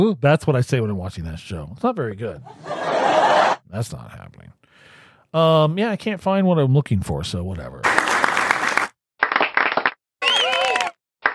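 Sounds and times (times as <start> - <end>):
speech: 0.0 - 2.7, 3.7 - 8.0
laughter: 2.4 - 3.6
short applause sound effect: 7.8 - 11.3.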